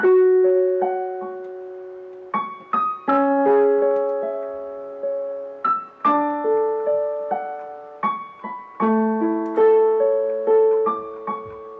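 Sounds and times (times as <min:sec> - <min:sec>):
sad piano loop: 0:00.0 - 0:11.7.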